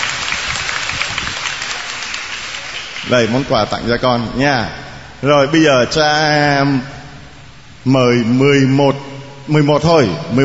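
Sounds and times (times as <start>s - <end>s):
applause at a church gathering: 0.0s - 3.5s
speech: 3.0s - 6.9s, 7.8s - 10.4s.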